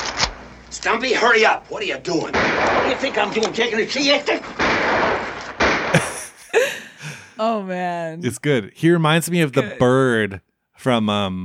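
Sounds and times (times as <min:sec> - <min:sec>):
speech: 0:00.8 - 0:05.1, 0:07.4 - 0:11.4
gunfire in a film shootout: 0:02.2 - 0:03.4, 0:04.4 - 0:06.4
laughter: 0:06.0 - 0:07.4.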